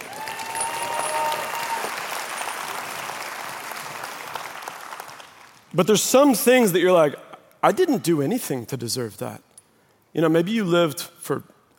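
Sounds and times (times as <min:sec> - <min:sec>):
round of applause: 0:00.0 - 0:05.7
speech: 0:05.7 - 0:09.5, 0:10.1 - 0:11.5.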